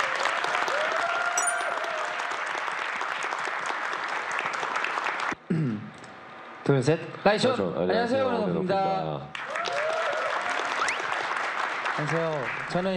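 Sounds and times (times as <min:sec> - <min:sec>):
audience applause: 0:00.0 - 0:05.4, 0:09.3 - 0:12.8
speech: 0:06.7 - 0:09.5, 0:12.0 - 0:12.9.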